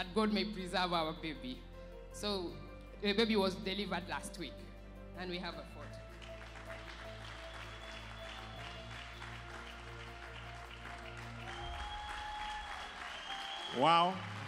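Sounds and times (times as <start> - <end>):
speech: 0.0 - 6.1, 13.7 - 14.4
audience clapping: 5.9 - 14.4.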